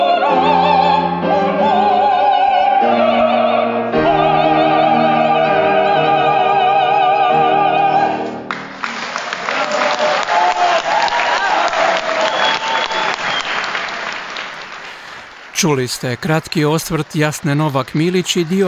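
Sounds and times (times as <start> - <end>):
opera voices singing a duet aria at a Croatian opera evening in Sydney: 0.0 - 8.5
audience ovation at a Croatian opera evening in Sydney: 8.4 - 18.6
speech: 15.6 - 18.6.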